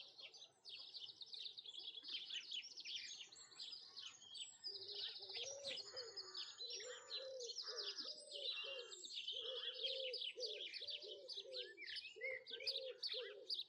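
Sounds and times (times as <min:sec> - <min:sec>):
birdsong: 0:00.0 - 0:13.6
bird cooing: 0:04.7 - 0:13.6.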